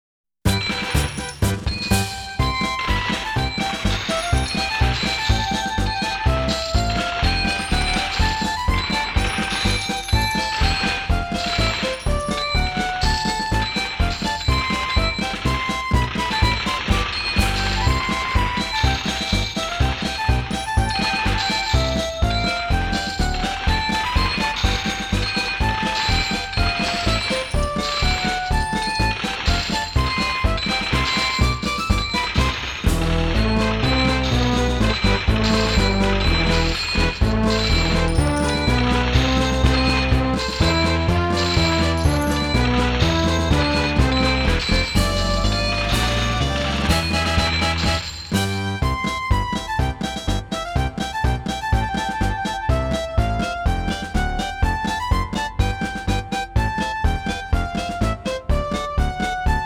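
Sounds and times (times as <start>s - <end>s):
march music: 0.4s - 59.6s.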